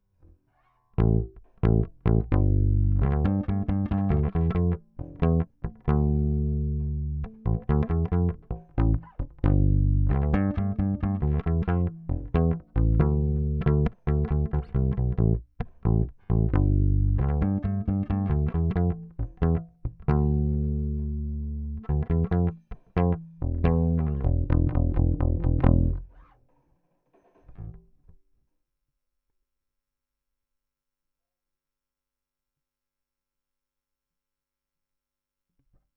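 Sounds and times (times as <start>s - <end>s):
bass guitar recorded by direct input: 0.6s - 26.4s, 27.4s - 28.1s.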